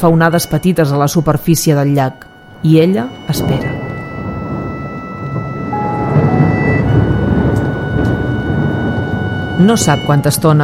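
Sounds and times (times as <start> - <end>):
speech: 0.0 - 3.8, 9.6 - 10.6
thunder rumbling during a storm: 2.2 - 10.6.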